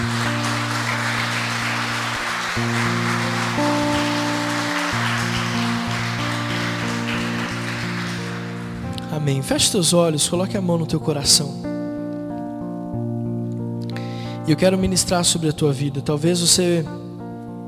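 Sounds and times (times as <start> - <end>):
audience applause: 0.0 - 8.9
keyboard chords: 0.0 - 15.4
speech: 9.2 - 11.8, 14.5 - 17.1.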